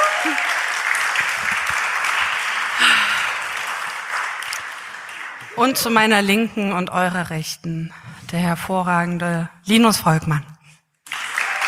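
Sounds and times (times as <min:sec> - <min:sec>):
audience clapping: 0:00.0 - 0:06.3, 0:11.0 - 0:11.6
speech: 0:05.6 - 0:10.5.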